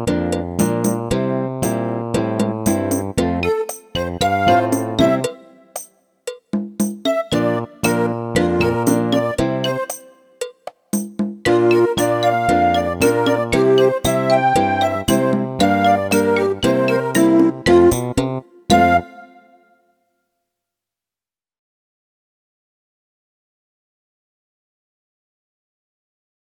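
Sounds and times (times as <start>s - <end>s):
drum solo: 0.6s - 1.8s, 2.5s - 19.1s.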